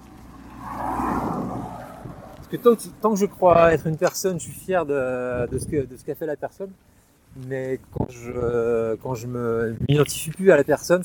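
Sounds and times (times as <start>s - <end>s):
car passing by: 0.0s - 3.2s
speech: 2.5s - 11.0s.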